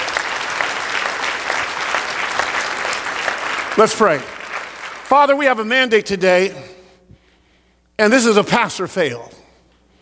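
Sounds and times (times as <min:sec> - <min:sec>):
audience applause: 0:00.0 - 0:05.4
speech: 0:03.8 - 0:04.3, 0:05.1 - 0:06.8, 0:08.0 - 0:09.4.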